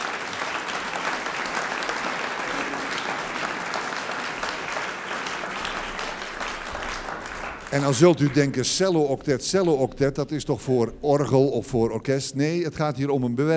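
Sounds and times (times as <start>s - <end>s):
audience applause for a chamber choir and cello octet: 0.0s - 9.0s
speech: 7.7s - 13.5s.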